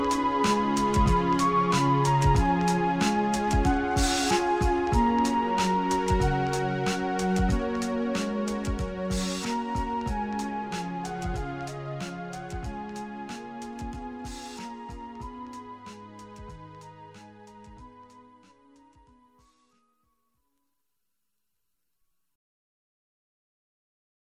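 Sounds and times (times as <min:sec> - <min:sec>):
soft orchestral music: 0:00.0 - 0:19.0.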